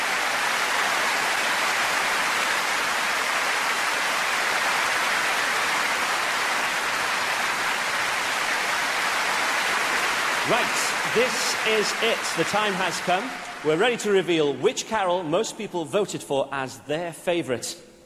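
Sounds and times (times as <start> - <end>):
audience applause: 0.0 - 14.6
speech: 10.5 - 17.9.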